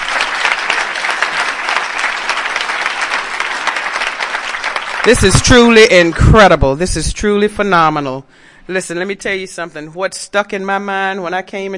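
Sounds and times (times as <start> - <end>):
Narcotics Anonymous convention audience applauding: 0.0 - 6.7
speech: 5.0 - 11.7.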